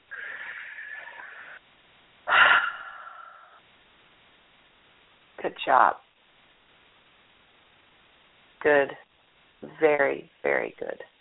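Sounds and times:
person breathing slowly during a guided breathing exercise: 0:00.0 - 0:01.6, 0:02.2 - 0:03.6
speech: 0:05.4 - 0:06.0, 0:08.6 - 0:09.0, 0:09.6 - 0:11.1.

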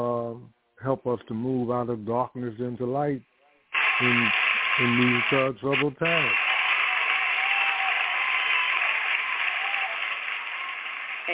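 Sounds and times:
speech: 0:00.8 - 0:03.3, 0:04.0 - 0:06.4
applause: 0:03.8 - 0:11.3.

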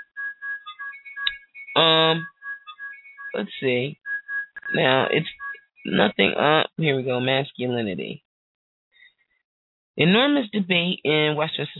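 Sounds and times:
phone ringing with electronic melody: 0:00.0 - 0:03.4, 0:04.0 - 0:06.1
speech: 0:01.8 - 0:02.3, 0:03.4 - 0:04.0, 0:04.7 - 0:08.2, 0:10.0 - 0:11.7.

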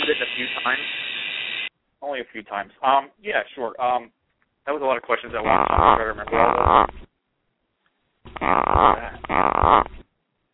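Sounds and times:
speech: 0:00.6 - 0:01.0, 0:02.0 - 0:07.1, 0:08.3 - 0:10.0
gecko vocalizations: 0:05.3 - 0:07.1, 0:08.3 - 0:10.0.

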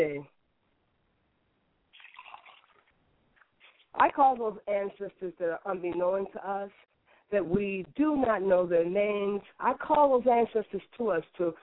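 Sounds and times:
faint hiss: 0:00.0 - 0:11.6
liquid being poured as libation: 0:01.9 - 0:03.0
speech: 0:04.0 - 0:11.6.

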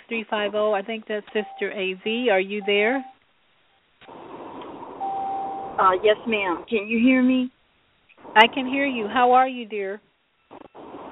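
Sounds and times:
speech: 0:00.1 - 0:03.1, 0:05.8 - 0:07.6, 0:08.3 - 0:10.1
steady electronic beep on a phone caller's line: 0:01.4 - 0:03.2, 0:05.0 - 0:05.8.

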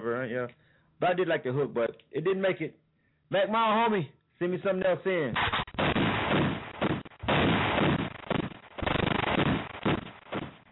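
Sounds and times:
speech: 0:00.0 - 0:05.9
gunshot sound effect as a one-gun salute: 0:05.4 - 0:10.7.

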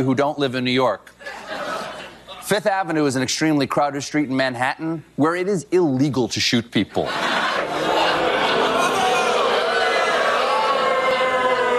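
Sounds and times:
speech: 0:00.0 - 0:01.4, 0:02.5 - 0:07.3
laughter: 0:01.2 - 0:02.4, 0:07.0 - 0:11.7
audience booing: 0:07.2 - 0:11.7.

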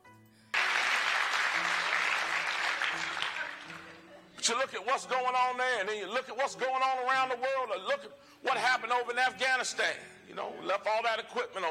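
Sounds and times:
audience clapping: 0:00.6 - 0:04.0
speech: 0:04.5 - 0:11.7.

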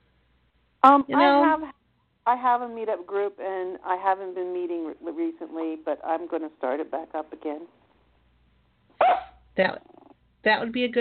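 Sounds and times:
speech: 0:00.8 - 0:07.8, 0:09.1 - 0:10.9
dog barking: 0:09.0 - 0:09.4.

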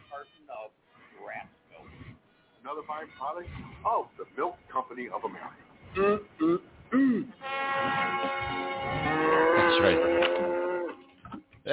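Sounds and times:
speech: 0:00.2 - 0:08.6
cow mooing: 0:07.6 - 0:11.0.

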